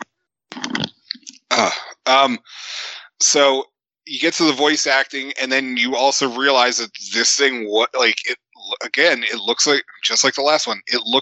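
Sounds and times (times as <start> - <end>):
person coughing: 1.5 - 2.1
speech: 1.6 - 11.2.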